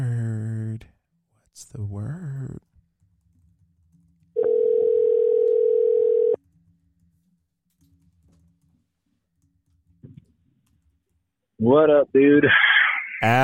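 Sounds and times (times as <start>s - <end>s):
speech: 1.6s - 2.6s, 11.6s - 12.6s, 13.2s - 13.4s
telephone ringing on an outgoing call: 4.4s - 6.4s.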